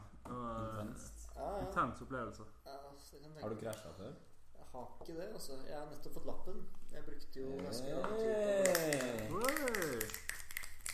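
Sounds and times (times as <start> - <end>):
speech: 1.8 - 10.4
hand claps: 7.5 - 10.9.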